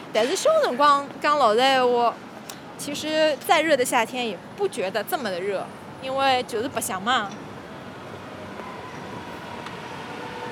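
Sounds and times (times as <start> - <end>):
speech: 0.1 - 7.4
Shanghai Metro Line 5 train pulling into a station: 7.4 - 10.5.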